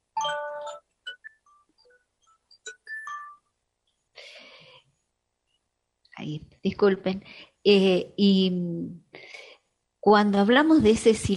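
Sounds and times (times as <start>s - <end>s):
mobile phone ringing: 0.2s - 2.0s
speech: 6.3s - 9.0s, 10.0s - 11.3s.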